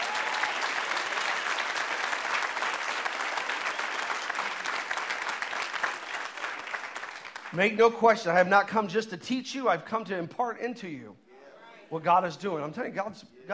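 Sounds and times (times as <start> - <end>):
crowd clapping: 0.0 - 7.8
speech: 7.5 - 11.2, 11.9 - 13.5.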